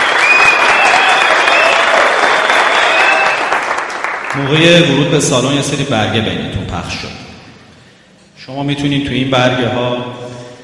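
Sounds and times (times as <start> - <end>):
festival audience applause for a band: 0.0 - 4.5
speech: 4.4 - 7.3, 8.5 - 10.2.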